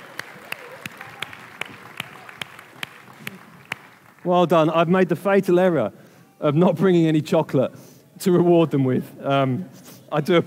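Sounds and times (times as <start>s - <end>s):
audience applauding children: 0.0s - 4.4s
speech: 4.2s - 10.4s.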